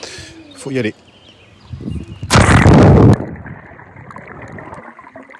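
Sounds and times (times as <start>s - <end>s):
speech: 0.6s - 1.1s, 1.7s - 2.0s
dive into a residential swimming pool recorded on an Apple Watch: 2.3s - 3.3s.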